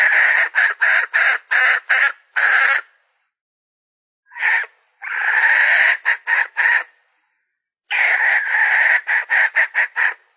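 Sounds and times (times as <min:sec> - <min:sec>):
Red junglefowl hen cackling: 0:00.0 - 0:02.9, 0:04.3 - 0:07.0, 0:07.9 - 0:10.2.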